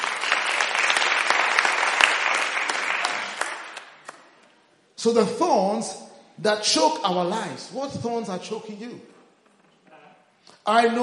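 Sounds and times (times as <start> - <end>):
audience applause: 0.0 - 4.2
speech: 5.0 - 9.2, 10.6 - 11.0.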